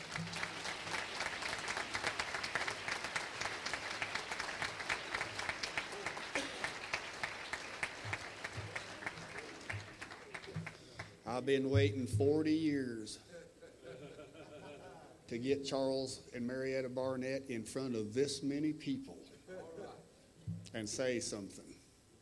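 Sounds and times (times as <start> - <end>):
audience hand clapping: 0.0 - 11.2
laughter: 5.6 - 7.1, 13.3 - 15.2, 19.5 - 20.1
speech: 11.4 - 13.3, 15.3 - 19.2, 20.7 - 21.7.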